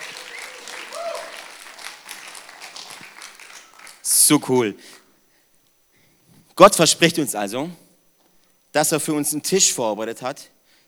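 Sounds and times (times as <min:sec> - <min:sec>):
audience applause: 0:00.0 - 0:04.1
speech: 0:04.3 - 0:05.0, 0:06.6 - 0:07.8, 0:08.8 - 0:10.6.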